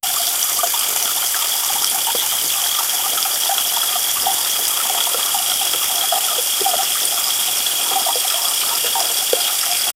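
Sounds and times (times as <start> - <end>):
watering a plant: 0.0 - 9.9.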